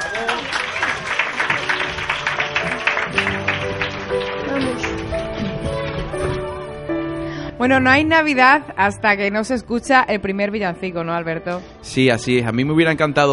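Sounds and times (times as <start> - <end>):
audience applause: 0.0 - 6.1
speech: 7.6 - 13.3.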